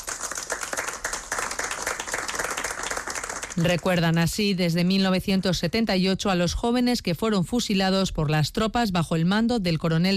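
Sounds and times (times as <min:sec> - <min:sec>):
applause after a floral offering: 0:00.0 - 0:04.5
speech: 0:03.6 - 0:10.1.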